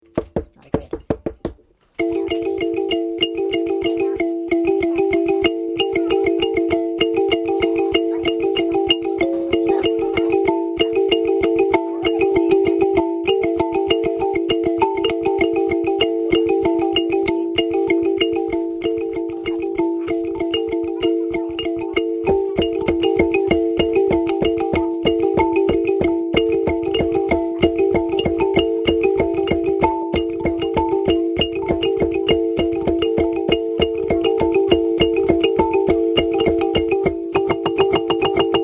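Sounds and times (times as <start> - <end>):
mbira music: 0.0 - 38.6.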